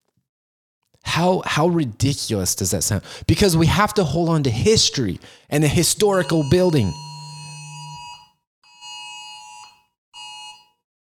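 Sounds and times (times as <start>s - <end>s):
speech: 1.2s - 7.1s
phone alert bursts: 5.7s - 8.3s.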